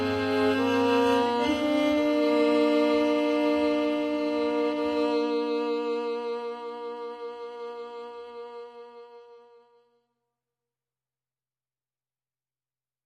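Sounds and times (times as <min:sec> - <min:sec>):
string instruments: 0:00.0 - 0:10.0.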